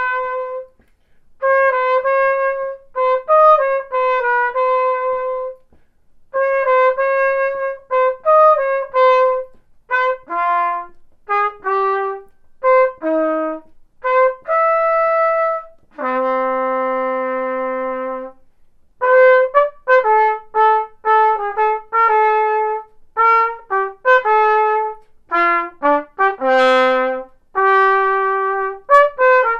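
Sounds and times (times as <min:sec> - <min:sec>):
tuba playing opera excerpts: 0:00.0 - 0:00.8, 0:01.4 - 0:29.5.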